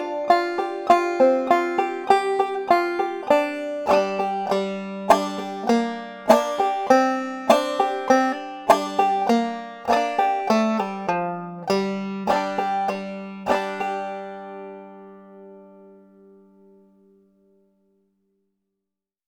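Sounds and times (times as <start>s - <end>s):
banjo hammer-ons and pull-offs with clucking: 0.0s - 15.2s.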